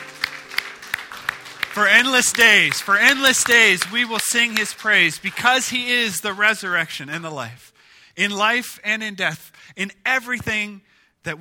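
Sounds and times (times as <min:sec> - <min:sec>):
congregation clapping hands in praise during a church service: 0:00.0 - 0:06.8
speech: 0:01.8 - 0:11.4.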